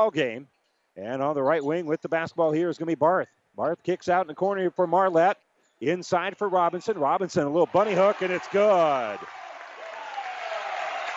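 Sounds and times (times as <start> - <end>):
speech: 0.0 - 9.4
crowd cheering at basketball game: 6.7 - 11.1.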